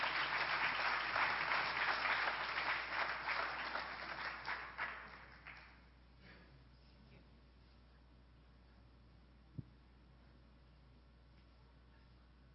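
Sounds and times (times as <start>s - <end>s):
audience applause: 0.0s - 5.8s.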